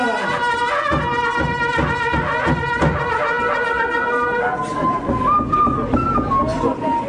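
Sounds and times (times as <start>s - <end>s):
quipa conch horns being blown: 0.0s - 5.6s
drums: 0.4s - 3.2s, 4.6s - 7.0s.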